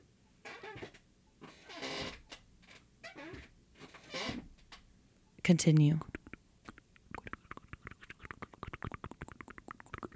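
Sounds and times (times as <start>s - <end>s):
squeaky chair creaking: 0.4s - 4.5s
speech: 5.5s - 6.2s.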